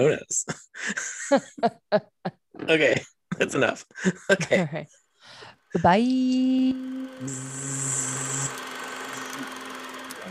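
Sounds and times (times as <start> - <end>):
laughter: 0.0 - 2.1, 2.7 - 4.8
speech: 0.0 - 2.1, 2.7 - 5.0, 5.7 - 8.6
electronic buzz imitating a bee: 6.4 - 10.2.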